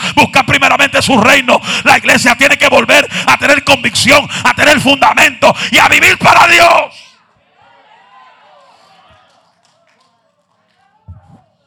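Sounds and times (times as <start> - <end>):
speech: 0.1 - 7.0
audience applause: 8.6 - 11.1.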